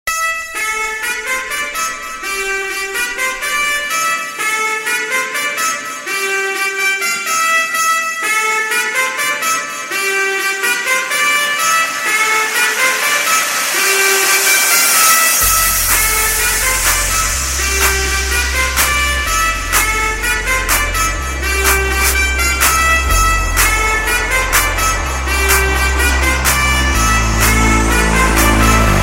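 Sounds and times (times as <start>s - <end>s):
trumpet: 0.1s - 29.0s.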